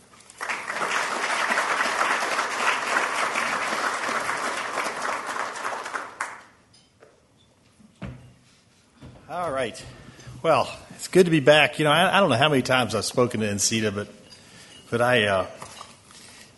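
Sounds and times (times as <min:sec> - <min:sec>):
conference audience applauding a closing keynote speaker: 0:00.0 - 0:06.5
speech: 0:09.6 - 0:14.2, 0:14.9 - 0:15.7.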